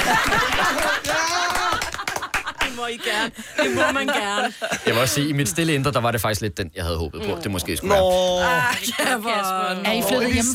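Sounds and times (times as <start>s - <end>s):
laughter: 0.0s - 6.1s
one person clapping hands: 0.2s - 2.8s
speech: 2.9s - 10.5s.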